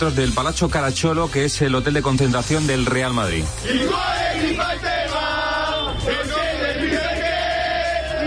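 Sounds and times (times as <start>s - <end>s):
speech: 0.0s - 5.2s
Napoli football fans chanting at night: 3.6s - 8.2s.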